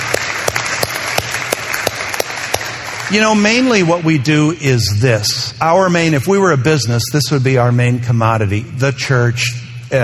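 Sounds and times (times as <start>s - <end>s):
audience applause: 0.0s - 3.8s
speech: 3.1s - 10.0s.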